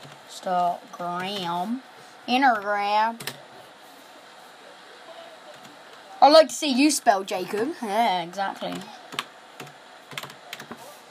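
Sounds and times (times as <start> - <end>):
speech: 0.4 - 3.3, 6.2 - 9.0
typing on a computer keyboard: 8.8 - 10.8.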